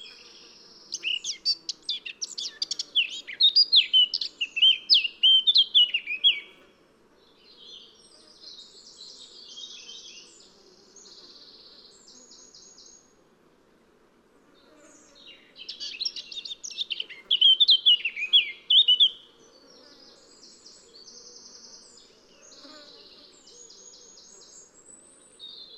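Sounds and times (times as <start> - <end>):
Eurasian blackcap Sylvia atricapilla singing: 0.9 - 6.5, 15.6 - 19.2.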